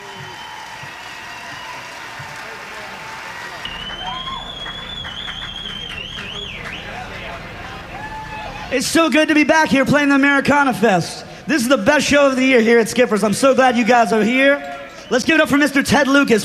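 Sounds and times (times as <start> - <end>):
applause: 0.0 - 7.4
speech: 8.7 - 16.4.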